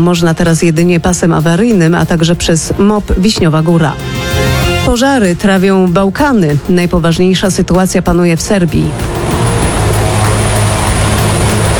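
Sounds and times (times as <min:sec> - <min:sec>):
speech: 0:00.0 - 0:04.2, 0:04.8 - 0:09.1
firefighting helicopter flying overhead: 0:08.9 - 0:11.7.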